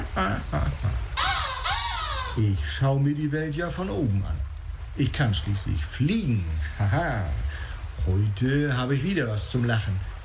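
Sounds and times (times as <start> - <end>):
black-headed gull (Larus ridibundus) laughing calls: 0.0 - 2.4
low voice-like sounds: 0.0 - 10.2
speech: 2.4 - 10.1.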